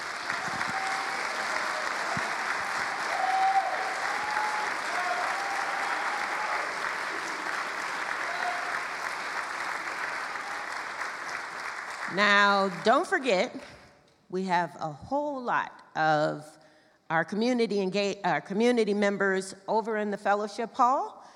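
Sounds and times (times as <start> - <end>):
audience applause for guests: 0.0 - 12.8
speech: 12.2 - 21.3.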